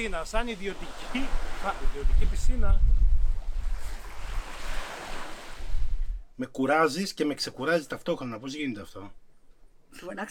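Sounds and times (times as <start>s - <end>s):
waves on a beach: 0.0s - 2.6s, 3.3s - 6.0s
speech: 0.0s - 2.9s, 6.4s - 9.2s, 9.9s - 10.2s.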